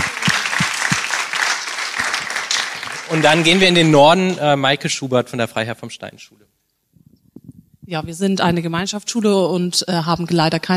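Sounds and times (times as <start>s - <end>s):
crowd applause: 0.0s - 4.4s
speech: 3.1s - 6.6s, 7.9s - 10.7s.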